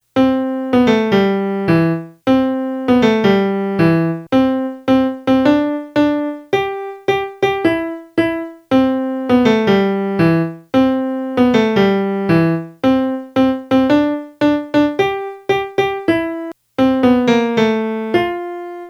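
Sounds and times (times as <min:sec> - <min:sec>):
melody: 0:00.2 - 0:18.8.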